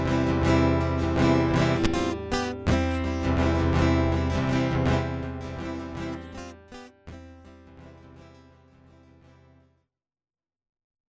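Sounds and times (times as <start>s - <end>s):
guitar loop: 0.0s - 8.2s.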